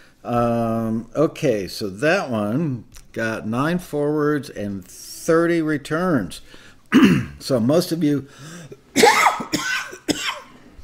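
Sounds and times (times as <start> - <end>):
speech: 0.2 - 9.2
harsh raspy coughs from a piece of coffee bean stuck in the throat: 6.9 - 7.4, 8.5 - 10.6.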